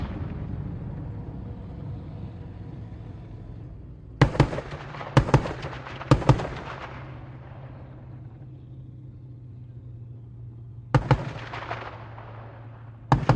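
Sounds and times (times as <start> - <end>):
.50 caliber machine gun fired in canyon: 4.2 - 8.1, 10.9 - 13.3
bullet ricochets: 4.2 - 8.2, 11.0 - 13.3.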